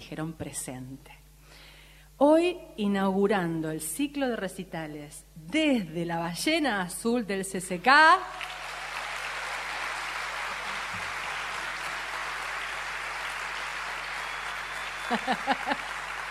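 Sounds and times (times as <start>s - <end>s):
speech: 0.1s - 1.2s, 2.2s - 8.6s, 15.1s - 15.8s
audience applause: 8.3s - 16.2s
laughter: 14.8s - 16.2s.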